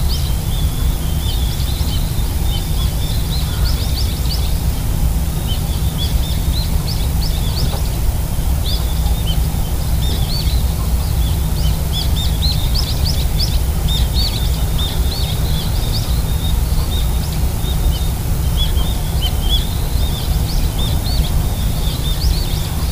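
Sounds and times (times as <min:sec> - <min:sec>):
birds at home: 0:00.0 - 0:22.8.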